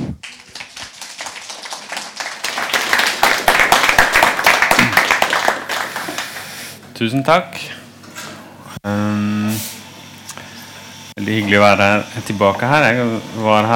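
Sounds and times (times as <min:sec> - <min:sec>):
audience applause: 0:00.2 - 0:06.6
speech: 0:07.0 - 0:07.8, 0:08.8 - 0:09.7, 0:11.2 - 0:13.7.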